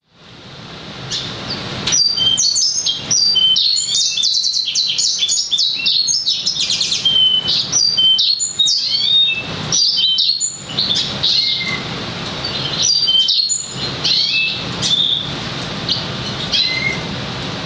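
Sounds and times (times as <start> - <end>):
lemon-breasted canary singing: 1.1 - 17.1.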